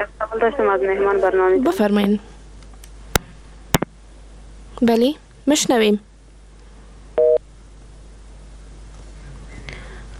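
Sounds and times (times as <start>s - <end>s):
speech: 0.4s - 2.3s, 4.8s - 6.1s
telephone busy tone beep after a dropped call: 7.2s - 7.4s.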